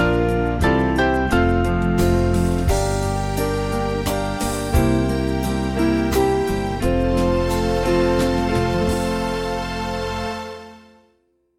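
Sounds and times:
small band playing: 0.0 - 10.8.

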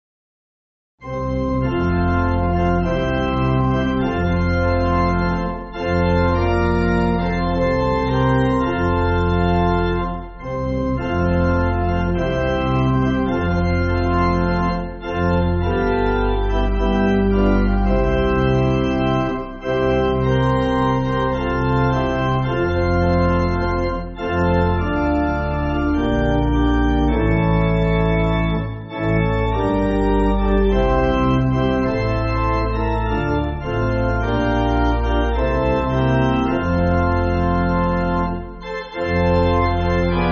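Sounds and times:
pipe organ backing for churches: 1.0 - 40.3.

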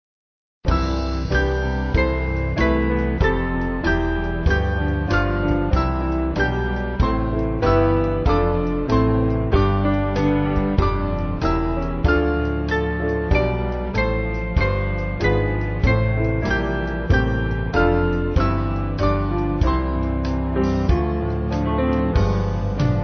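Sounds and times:
band backing music: 0.7 - 23.0.

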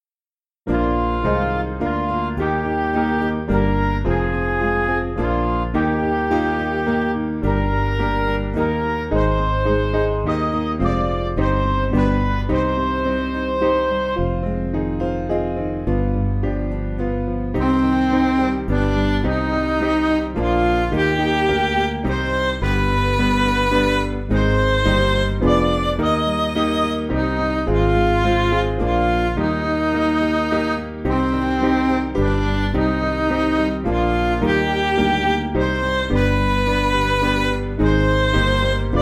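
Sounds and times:
backing music for churches: 0.7 - 38.9.

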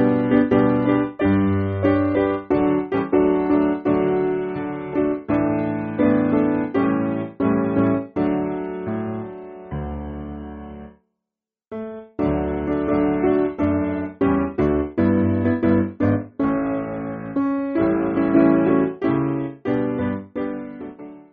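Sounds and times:
piano backing for churches: 0.0 - 11.0, 11.7 - 21.3.

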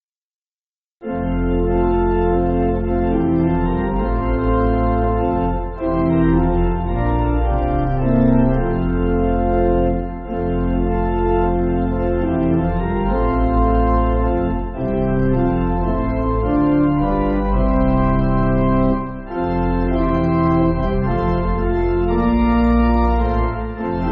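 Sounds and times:
church pipe organ backing: 1.0 - 24.1.

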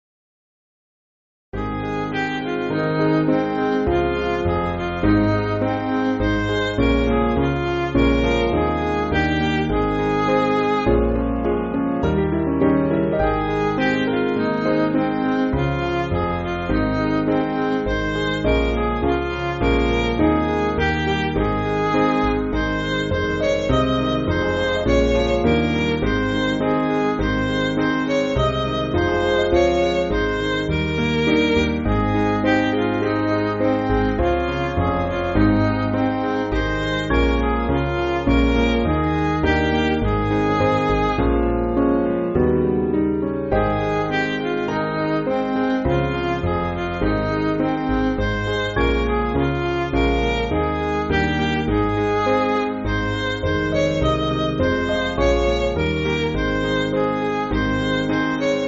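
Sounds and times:
MIDI church backing music: 1.6 - 58.6.

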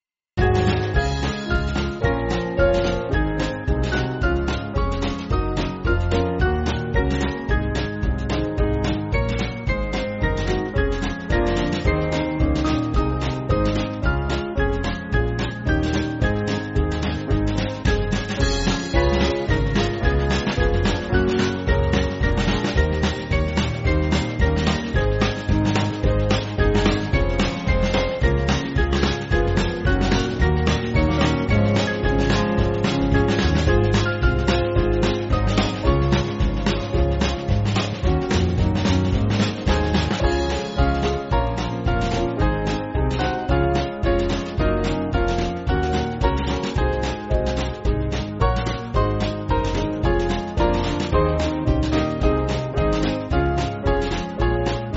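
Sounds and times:
band backing music: 0.4 - 54.9.

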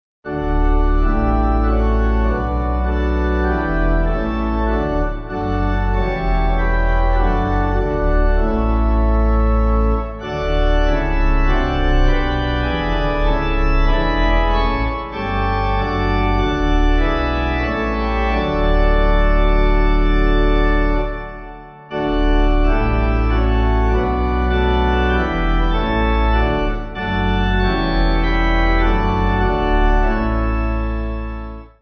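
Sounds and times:
pipe organ: 0.3 - 31.8.

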